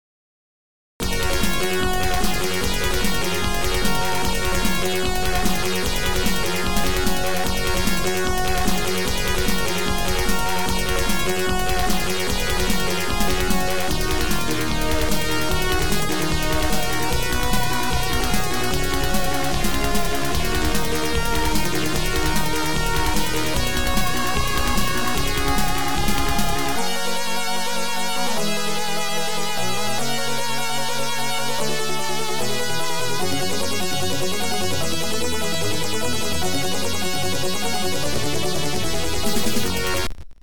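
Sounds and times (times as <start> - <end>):
OPL2 FM synth chip music: 1.0 - 40.4.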